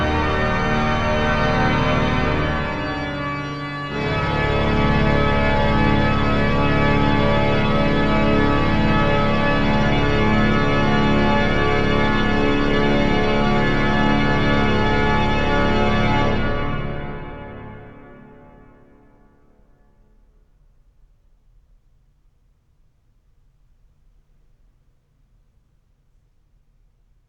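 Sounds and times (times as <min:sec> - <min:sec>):
organ music: 0:00.0 - 0:19.2.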